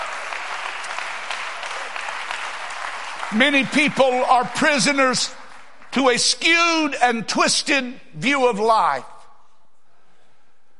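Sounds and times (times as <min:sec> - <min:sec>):
audience clapping hands: 0:00.0 - 0:06.9
speech: 0:03.3 - 0:05.4, 0:06.0 - 0:09.1.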